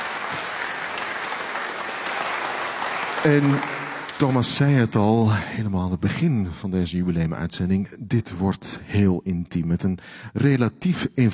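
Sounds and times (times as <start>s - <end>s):
audience applause: 0.0s - 4.8s
speech: 3.2s - 11.3s.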